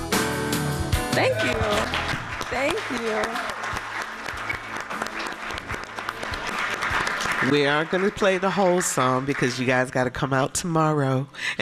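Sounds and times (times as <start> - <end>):
audience clapping for musicians: 1.1 - 10.3
speech: 1.2 - 3.6, 7.4 - 11.5.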